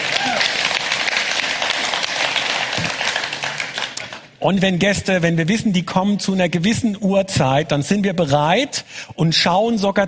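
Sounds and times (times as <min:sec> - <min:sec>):
audience applause: 0:00.0 - 0:04.3
speech: 0:04.4 - 0:10.0.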